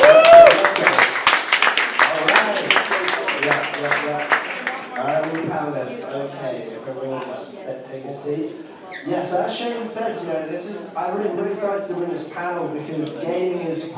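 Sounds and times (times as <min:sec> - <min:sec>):
audience applause: 0:00.0 - 0:05.4
speech: 0:07.9 - 0:13.9.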